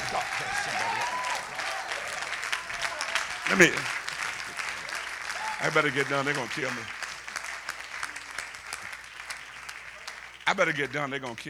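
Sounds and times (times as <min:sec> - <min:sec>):
faint voices and whoops: 0:00.0 - 0:03.6, 0:04.4 - 0:05.8
crowd applauding: 0:00.0 - 0:11.4
speech: 0:03.5 - 0:04.0, 0:05.6 - 0:07.0, 0:10.5 - 0:11.4.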